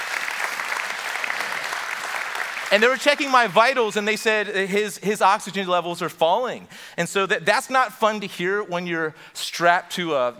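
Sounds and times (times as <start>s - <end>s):
audience applause: 0.0s - 3.7s
speech: 2.7s - 10.3s.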